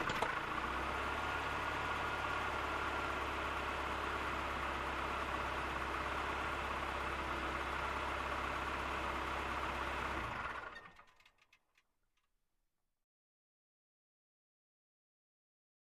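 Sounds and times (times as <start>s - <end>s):
car driving on dirt road: 0.0s - 11.1s.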